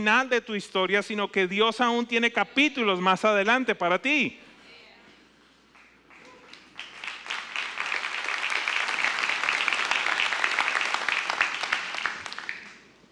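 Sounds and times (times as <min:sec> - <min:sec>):
speech: 0:00.0 - 0:04.5
golf clap, quiet polite applause: 0:05.7 - 0:13.0.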